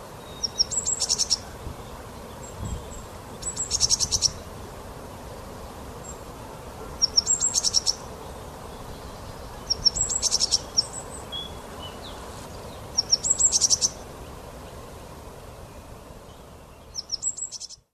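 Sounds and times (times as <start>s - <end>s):
low background hiss: 0.0s - 17.9s
great tit calling: 0.2s - 4.5s, 6.9s - 14.0s, 16.8s - 17.8s.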